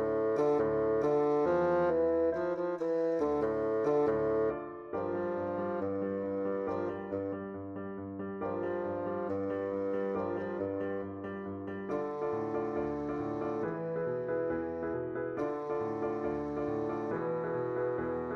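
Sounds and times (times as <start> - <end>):
rhythmic bassoon: 0.0 - 7.6, 8.4 - 11.2, 11.9 - 18.3.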